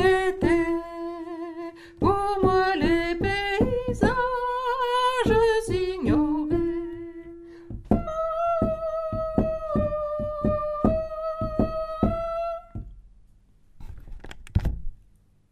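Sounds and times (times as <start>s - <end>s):
soprano singing: 0.0s - 12.9s.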